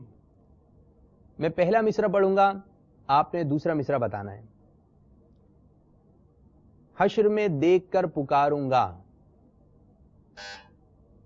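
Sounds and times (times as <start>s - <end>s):
speech: 1.4s - 4.5s, 7.0s - 9.0s, 10.4s - 10.6s
quiz buzzer bell pressed in a religious poetry contest: 10.4s - 10.8s.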